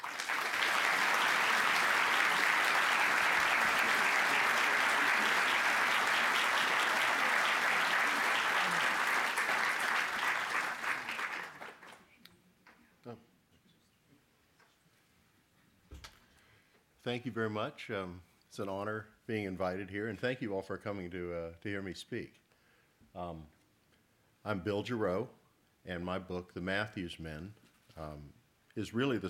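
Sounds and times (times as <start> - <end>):
audience applause welcoming an author: 0.0 - 12.0
speech: 17.1 - 22.4, 23.2 - 23.6, 24.4 - 29.2.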